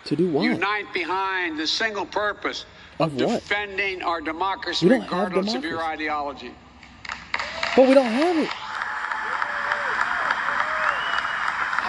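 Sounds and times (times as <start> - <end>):
speech: 0.1 - 6.6, 7.8 - 8.6
crowd applauding: 7.0 - 11.8.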